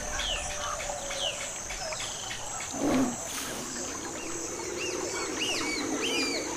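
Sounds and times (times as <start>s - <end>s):
insects outdoors: 0.0s - 6.5s
wild animals outdoors: 2.6s - 4.1s.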